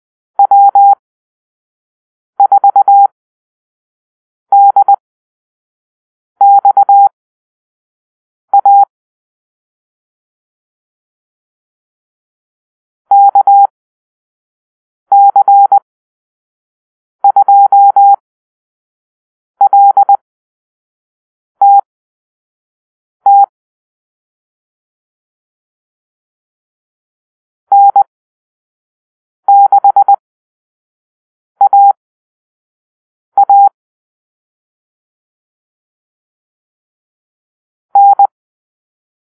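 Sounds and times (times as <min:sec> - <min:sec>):
morse code call-sign beeps: 0:00.4 - 0:01.0, 0:02.4 - 0:03.1, 0:04.5 - 0:05.0, 0:06.4 - 0:07.1, 0:08.5 - 0:08.9, 0:13.1 - 0:13.7, 0:15.1 - 0:15.8, 0:17.2 - 0:18.2, 0:19.6 - 0:20.2, 0:21.6 - 0:21.9, 0:23.3 - 0:23.5, 0:27.7 - 0:28.1, 0:29.5 - 0:30.2, 0:31.6 - 0:32.0, 0:33.4 - 0:33.7, 0:38.0 - 0:38.3.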